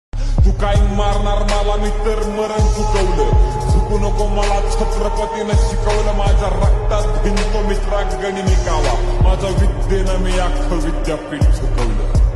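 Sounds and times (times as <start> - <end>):
lofi music: 0.4 - 12.3.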